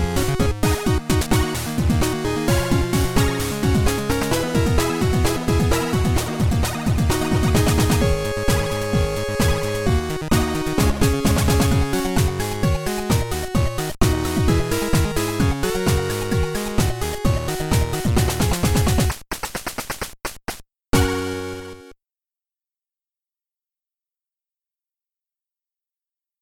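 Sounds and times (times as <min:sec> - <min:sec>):
chiptune cover: 0:00.0 - 0:19.2, 0:21.0 - 0:22.0.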